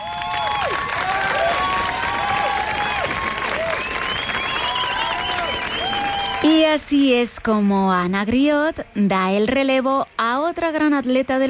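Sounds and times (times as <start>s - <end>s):
audience applause: 0.0s - 6.8s
speech: 6.5s - 11.4s.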